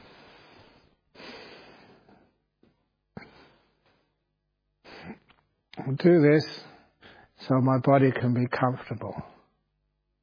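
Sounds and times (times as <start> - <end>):
slow deep breathing to relax the body: 0.0 - 5.4
speech: 5.9 - 6.6, 7.5 - 9.3.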